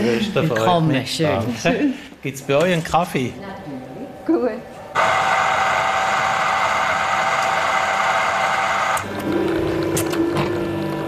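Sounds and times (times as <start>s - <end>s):
speech: 0.0s - 5.2s
touchscreen coffee machine brewing: 4.9s - 11.0s.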